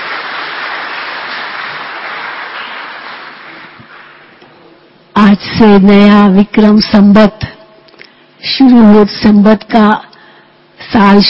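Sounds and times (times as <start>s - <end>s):
audience clapping: 0.0s - 4.5s
speech: 5.3s - 7.4s, 8.5s - 10.1s, 10.9s - 11.2s.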